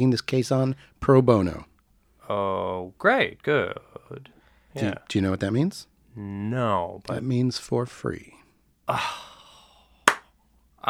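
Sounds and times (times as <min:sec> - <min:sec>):
speech: 0:00.0 - 0:01.7, 0:02.3 - 0:09.3
slow clapping: 0:10.0 - 0:10.8.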